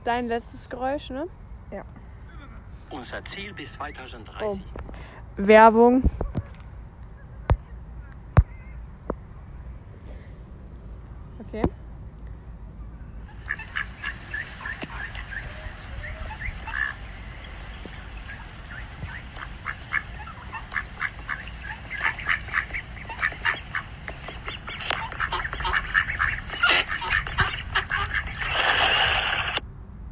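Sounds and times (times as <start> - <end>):
speech: 0.0 - 2.0, 2.9 - 6.2, 11.5 - 11.8
duck quacking: 13.3 - 29.6.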